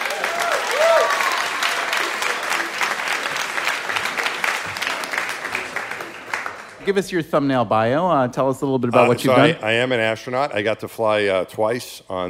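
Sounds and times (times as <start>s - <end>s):
audience clapping to welcome astronaut Mike Massimino: 0.0s - 7.0s
speech: 6.9s - 12.2s.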